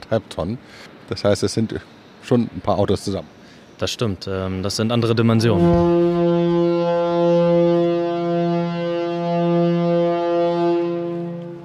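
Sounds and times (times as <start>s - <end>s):
speech: 0.1s - 6.6s
shipyard horn signalling the lunch break: 5.3s - 11.6s.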